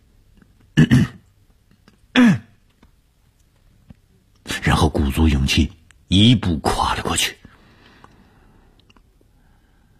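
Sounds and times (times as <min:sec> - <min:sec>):
deliberate coughs: 0:00.8 - 0:01.3, 0:02.1 - 0:02.5
speech: 0:05.0 - 0:07.4.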